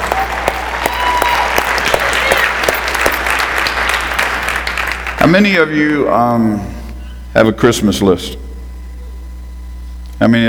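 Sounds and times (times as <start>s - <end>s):
audience hand clapping applause: 0.0s - 5.2s
speech: 5.3s - 6.8s, 7.4s - 8.4s, 10.2s - 10.4s.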